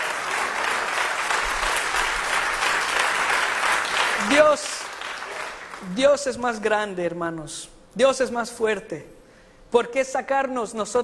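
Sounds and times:
audience applause: 0:00.0 - 0:06.0
speech: 0:04.2 - 0:04.8, 0:05.8 - 0:11.0.

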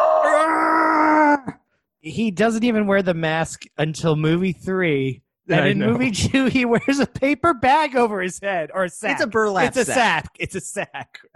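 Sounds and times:
horror movie killer doll raspy scream: 0:00.0 - 0:01.6
speech: 0:02.0 - 0:11.3.

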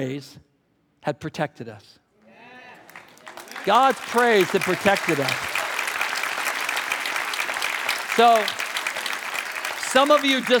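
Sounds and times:
speech: 0:00.0 - 0:02.0, 0:03.6 - 0:05.5, 0:08.2 - 0:08.6, 0:09.9 - 0:10.5
audience clapping: 0:02.8 - 0:10.5.

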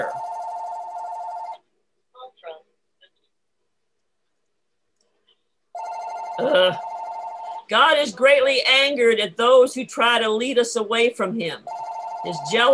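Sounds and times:
phone ringing with a bright electronic ringtone: 0:00.0 - 0:01.6, 0:05.8 - 0:07.7, 0:11.6 - 0:12.7
speech: 0:06.4 - 0:06.9, 0:07.7 - 0:12.7.

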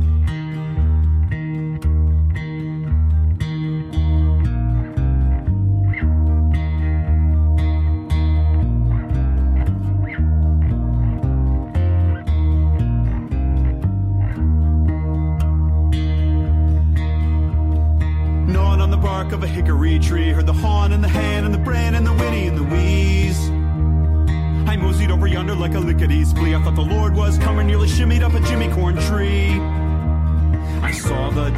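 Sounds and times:
song from an album: 0:00.0 - 0:31.5.

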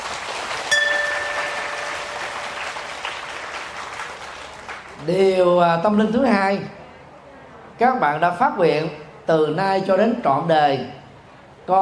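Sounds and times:
audience applause: 0:00.0 - 0:05.0
speech: 0:05.0 - 0:06.8, 0:07.8 - 0:11.0.

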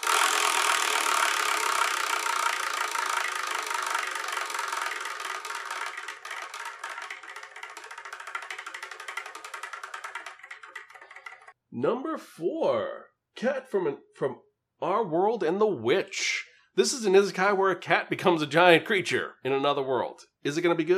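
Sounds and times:
prize wheel spinning: 0:00.0 - 0:11.6
speech: 0:11.8 - 0:20.9.

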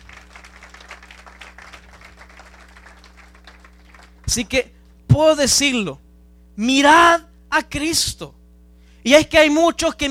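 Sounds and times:
audience applause: 0:00.0 - 0:04.3
low steady hum: 0:00.0 - 0:10.0
speech: 0:04.3 - 0:06.0, 0:06.6 - 0:08.4, 0:09.0 - 0:10.0.

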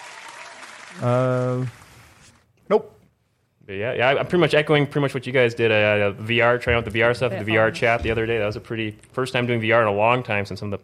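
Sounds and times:
canned applause sound effect: 0:00.0 - 0:01.8
speech: 0:00.9 - 0:01.8, 0:02.7 - 0:03.0, 0:03.7 - 0:10.8.

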